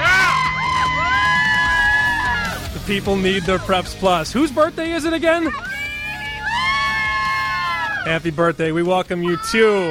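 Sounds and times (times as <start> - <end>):
live studio crowd of high school sports fans cheering: 0.0 - 3.7, 5.5 - 8.1, 9.2 - 9.8
speech: 2.9 - 5.7, 8.0 - 9.8.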